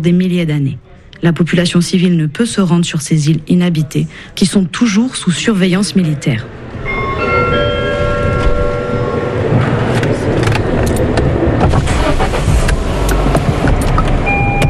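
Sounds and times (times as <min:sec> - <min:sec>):
speech: 0:00.0 - 0:06.6
car driving: 0:06.5 - 0:14.6
electric car windows being lowered: 0:06.9 - 0:14.6.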